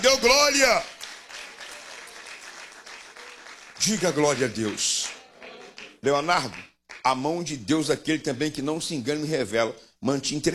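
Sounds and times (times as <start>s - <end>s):
speech: 0.0s - 1.0s, 3.8s - 5.0s, 6.0s - 10.5s
church congregation clapping in praise during a worship service: 0.0s - 7.3s.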